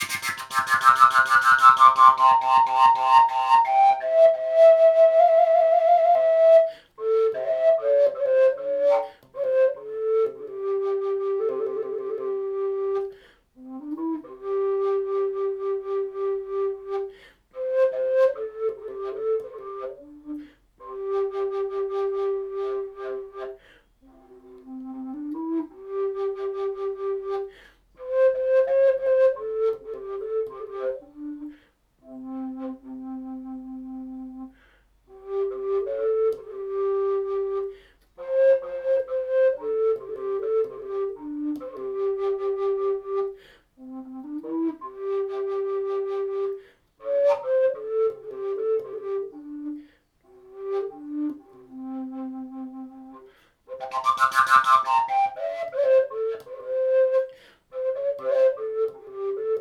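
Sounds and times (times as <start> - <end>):
fujara in C: 0.0 - 59.5.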